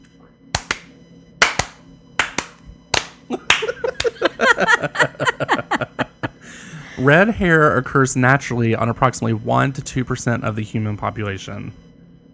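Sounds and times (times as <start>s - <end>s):
slow hand clapping: 0.6s - 4.3s
laughter: 3.3s - 7.3s
speech: 4.6s - 5.6s, 7.0s - 11.8s.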